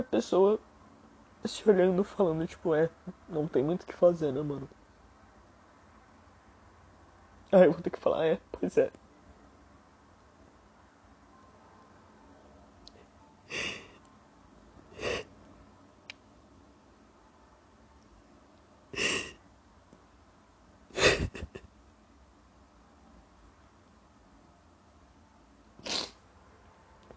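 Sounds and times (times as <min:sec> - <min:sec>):
speech: 0:00.0 - 0:00.7, 0:01.4 - 0:04.8, 0:07.5 - 0:09.0
person crying quietly near a microphone, sniffing and sobbing: 0:13.5 - 0:14.0, 0:14.9 - 0:15.3, 0:19.0 - 0:19.4, 0:20.9 - 0:21.6, 0:25.8 - 0:26.2.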